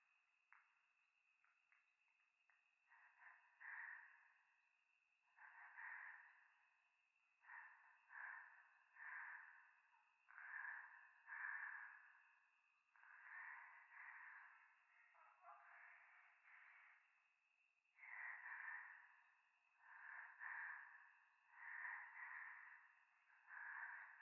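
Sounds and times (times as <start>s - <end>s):
breath pressed close to the left ear in a mountain church at night: 2.9s - 4.4s, 5.4s - 6.7s, 7.4s - 12.4s, 13.0s - 15.1s, 18.0s - 24.2s.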